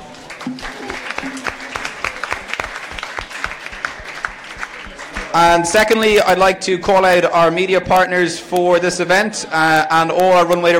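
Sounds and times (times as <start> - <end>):
crowd applauding: 0.0 - 6.1
speech: 5.3 - 10.7.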